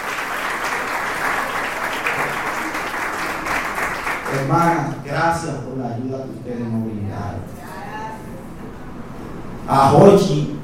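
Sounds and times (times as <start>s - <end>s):
church audience applauding: 0.0s - 4.9s
speech: 4.4s - 7.6s, 9.7s - 10.5s.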